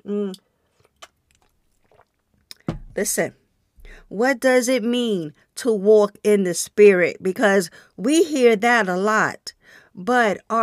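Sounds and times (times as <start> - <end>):
speech: 0.1 - 0.5, 3.0 - 3.4, 4.0 - 9.4, 10.0 - 10.6
sipping hot tea: 0.8 - 2.7.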